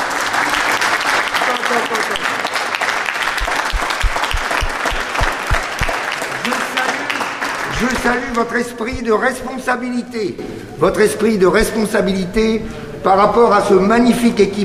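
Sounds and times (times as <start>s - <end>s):
crowd applauding: 0.0s - 9.0s
speech: 1.7s - 2.3s, 7.8s - 14.6s
sharp low thumps: 3.4s - 5.9s.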